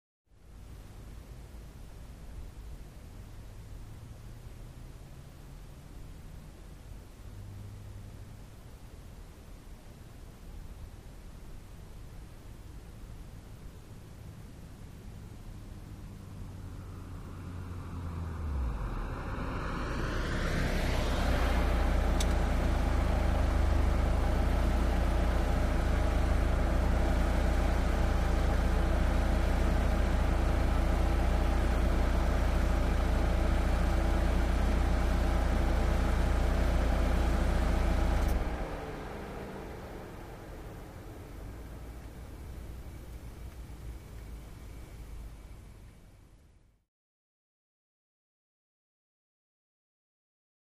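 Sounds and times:
1987 Chevrolet Corsica: 0.3 - 46.9.

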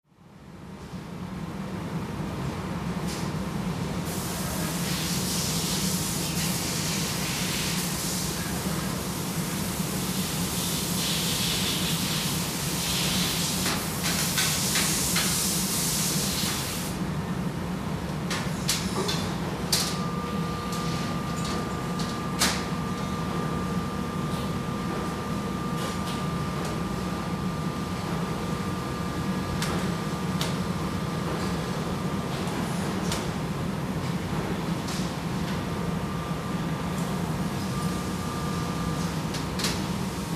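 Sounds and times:
industrial laundry factory machinery: 0.1 - 40.3.

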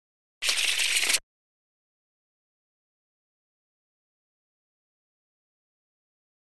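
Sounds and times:
deck of cards shuffling: 0.4 - 1.2.

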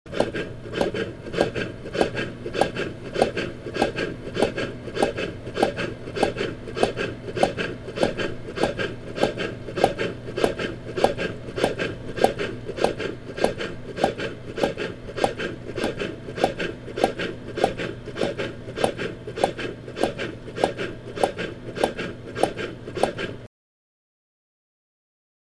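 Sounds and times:
light bellows inflating and deflating: 0.1 - 23.4
heart simulator beating fast and steady: 0.2 - 23.3.

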